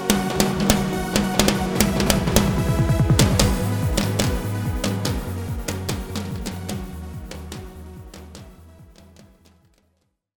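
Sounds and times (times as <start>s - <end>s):
percussion solo: 0.1s - 7.6s.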